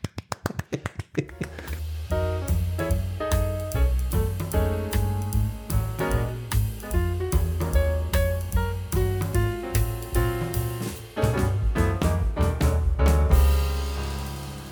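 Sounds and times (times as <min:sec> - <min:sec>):
imitated clap of chickens laying eggs: 0:00.0 - 0:01.8
loud music with a heavy bass line: 0:01.4 - 0:14.6.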